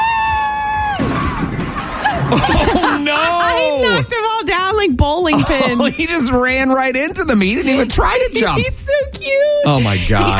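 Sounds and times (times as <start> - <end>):
crowd cheering: 0.0 - 4.2
laughter: 1.6 - 4.2, 5.2 - 6.6, 9.7 - 10.3
speech: 2.3 - 10.3.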